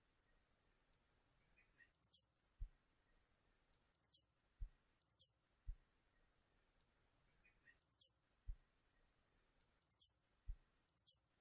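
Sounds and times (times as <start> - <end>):
canary chirps: 1.6 - 2.3, 4.0 - 4.3, 5.1 - 5.4, 7.4 - 8.2, 9.6 - 10.2, 11.0 - 11.3.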